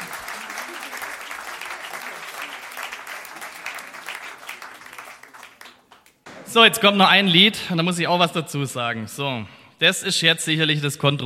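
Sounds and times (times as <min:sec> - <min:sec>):
audience applause: 0:00.0 - 0:06.4
speech: 0:06.5 - 0:11.2.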